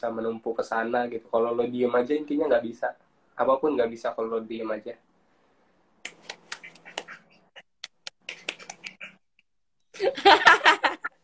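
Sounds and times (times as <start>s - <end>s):
speech: 0.0s - 5.1s, 10.0s - 10.8s
hand clapping: 6.0s - 7.2s, 7.8s - 9.0s
laughter: 10.0s - 11.2s.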